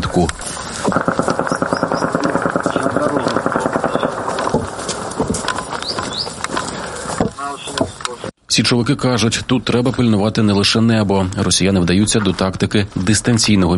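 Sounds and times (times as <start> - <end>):
speech: 0.2 - 0.5, 8.6 - 13.7
sharp clicks: 0.2 - 6.7
drones buzzing overhead: 0.9 - 5.6.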